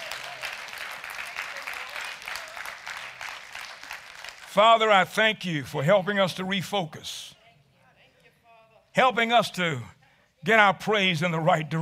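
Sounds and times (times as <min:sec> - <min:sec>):
crowd clapping hands in praise: 0:00.0 - 0:05.2
speech: 0:04.6 - 0:07.4, 0:09.0 - 0:11.8.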